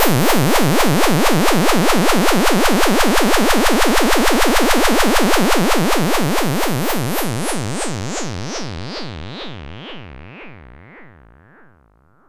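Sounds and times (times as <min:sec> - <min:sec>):
synth effects: 0:00.2 - 0:08.5.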